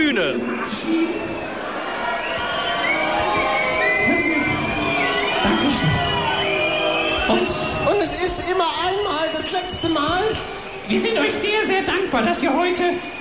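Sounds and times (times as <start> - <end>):
speech: 0.0 - 1.6, 7.3 - 13.2
audience cheering in a hall: 0.0 - 13.2
whoops and high shouts: 1.2 - 10.5.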